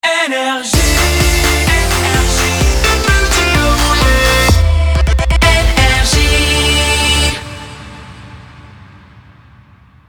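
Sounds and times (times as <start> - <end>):
shotgun jingle: 0.8 - 8.8.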